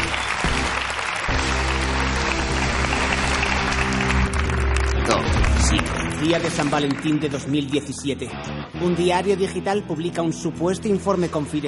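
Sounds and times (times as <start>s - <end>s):
audience applause: 0.0s - 8.0s
speech: 6.2s - 11.6s.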